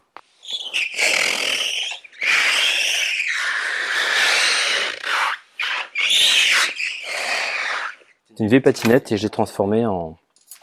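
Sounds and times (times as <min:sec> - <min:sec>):
ribbed hot-water bottle scraped along a surface squealing: 0:00.4 - 0:08.2
speech: 0:08.4 - 0:10.2.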